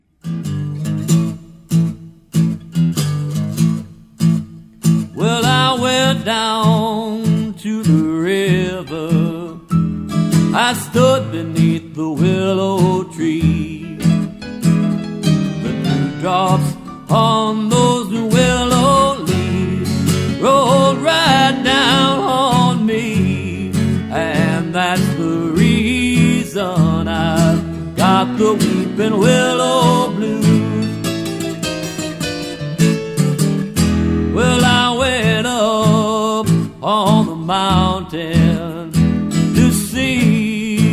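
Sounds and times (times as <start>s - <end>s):
blues music: 0.0s - 40.9s.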